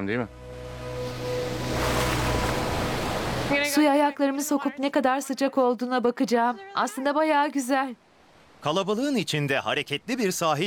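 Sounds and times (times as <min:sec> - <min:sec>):
speech: 0:00.0 - 0:00.4, 0:03.5 - 0:08.0, 0:08.6 - 0:10.6
surf on a 600-metre beach, the island's longest: 0:01.0 - 0:03.6.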